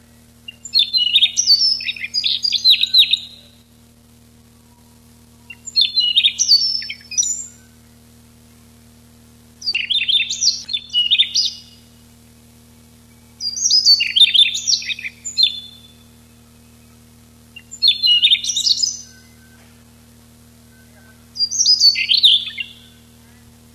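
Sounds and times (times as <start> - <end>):
steady low hum: 0.0 - 23.7
Siberian rubythroat warbling: 0.4 - 3.7, 4.5 - 8.0, 9.6 - 12.0, 13.2 - 20.0, 20.6 - 23.4.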